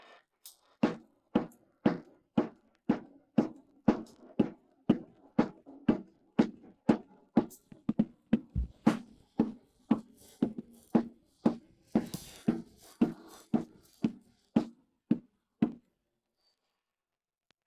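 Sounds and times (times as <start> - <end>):
drums: 0.8 - 14.8.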